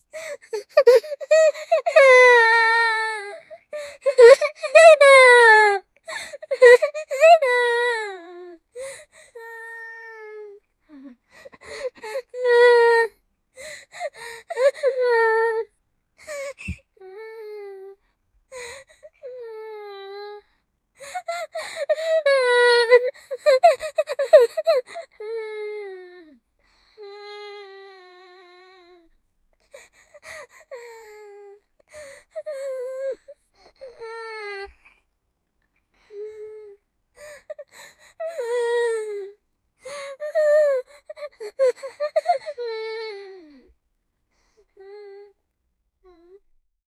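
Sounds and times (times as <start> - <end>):
hopeless sad 10 year old girl: 0.0 - 35.1, 35.8 - 46.6.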